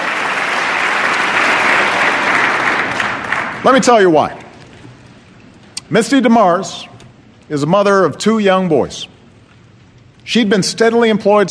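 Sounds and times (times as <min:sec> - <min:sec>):
Democratic applause in congressional chamber during State of the Union: 0:00.0 - 0:04.4
speech: 0:03.6 - 0:04.4, 0:05.9 - 0:09.1, 0:10.3 - 0:11.4.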